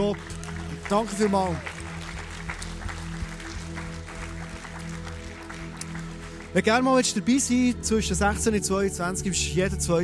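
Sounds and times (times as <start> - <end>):
audience clapping: 0.0 - 7.8
speech: 0.9 - 1.7, 6.5 - 10.0.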